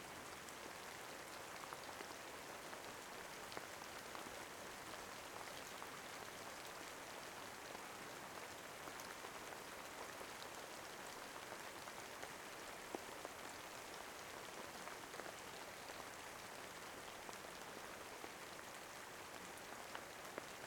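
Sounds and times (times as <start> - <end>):
rain: 0.0 - 20.6.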